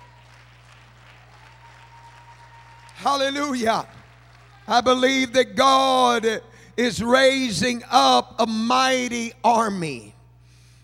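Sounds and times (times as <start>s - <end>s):
audience clapping hands: 0.0s - 5.4s
speech: 3.0s - 4.0s, 4.7s - 10.2s.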